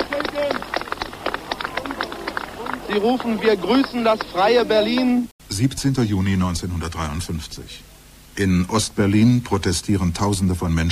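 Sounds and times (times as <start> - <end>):
demonstrators clapping at the Brandenburg Gate in Berlin in 1953: 0.0 - 5.3
speech: 2.9 - 10.9.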